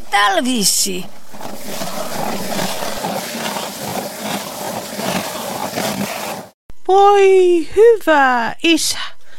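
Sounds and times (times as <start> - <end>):
speech: 0.1 - 1.8, 6.9 - 9.2
hand drill grinding into a wooden floor: 1.3 - 6.6.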